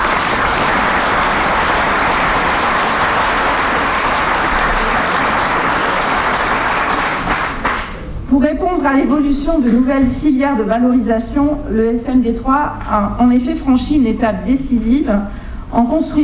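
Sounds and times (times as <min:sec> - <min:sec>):
audience applause: 0:00.0 - 0:08.1
speech: 0:08.4 - 0:16.2.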